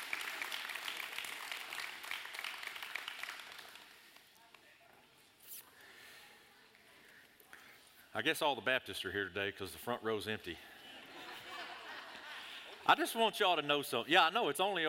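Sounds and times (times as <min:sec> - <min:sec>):
audience applause for the kids: 0:00.0 - 0:04.2
speech: 0:08.2 - 0:10.7, 0:12.9 - 0:14.8
laughter: 0:10.7 - 0:12.9.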